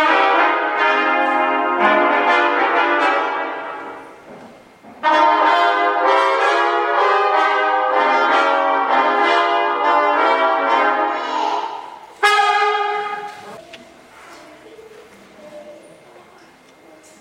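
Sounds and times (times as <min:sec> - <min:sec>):
jazz trumpet: 0:00.0 - 0:04.3, 0:05.0 - 0:13.6.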